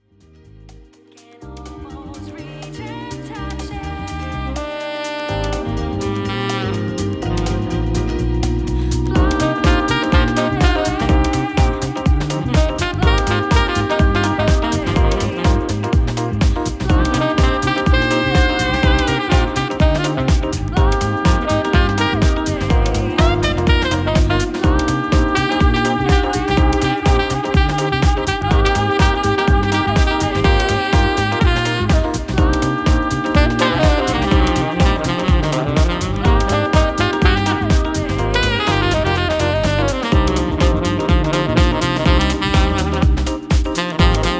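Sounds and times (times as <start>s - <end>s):
saxophone: 2.5s - 44.3s.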